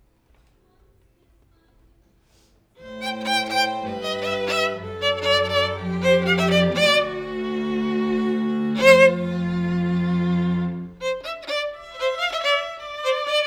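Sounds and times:
violin: 2.8 - 13.4.

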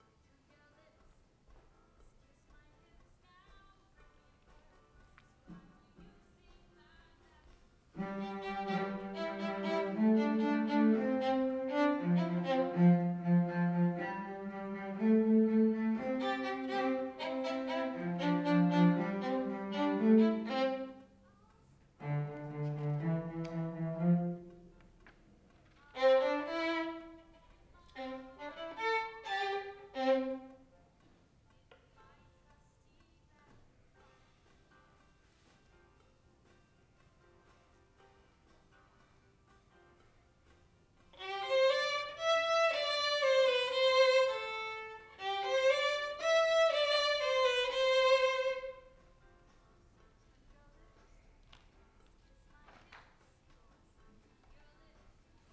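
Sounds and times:
violin: 7.4 - 30.8, 41.1 - 49.1.

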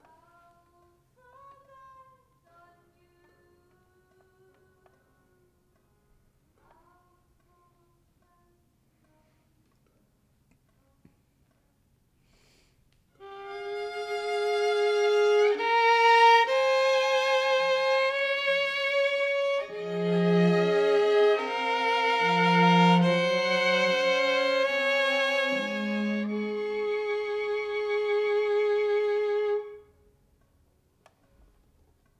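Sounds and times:
violin: 13.2 - 30.0.

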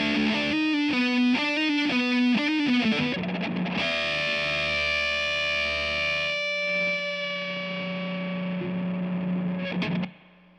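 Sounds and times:
guitar: 0.0 - 10.5.

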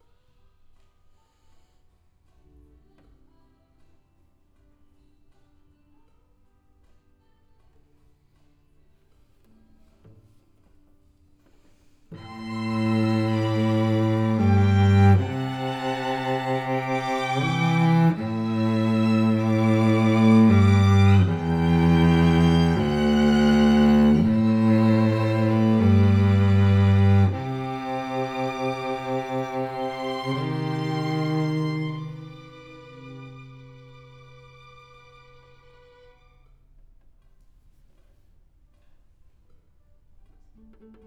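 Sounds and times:
cello: 12.1 - 36.5, 40.4 - 41.0.

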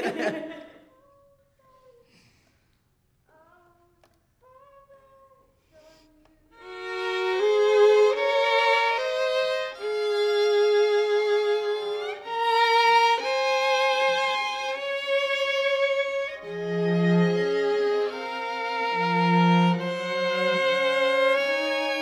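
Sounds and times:
laughter: 0.0 - 0.9
violin: 6.5 - 22.0.

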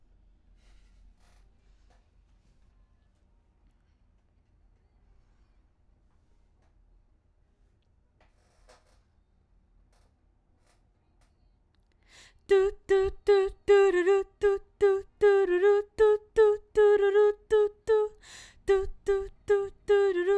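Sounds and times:
background vocals: 12.2 - 20.3.

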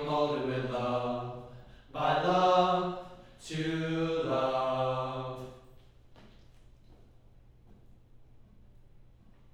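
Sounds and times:
low choir harmony: 0.0 - 5.7.

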